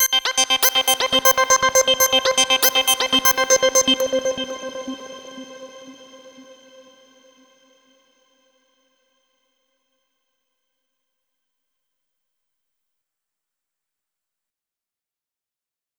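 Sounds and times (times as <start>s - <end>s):
overlay tone: 0.0s - 7.0s.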